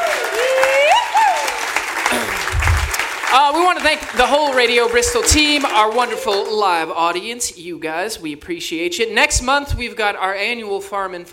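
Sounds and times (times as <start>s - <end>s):
audience applause: 0.0s - 6.8s
speech: 3.3s - 11.3s.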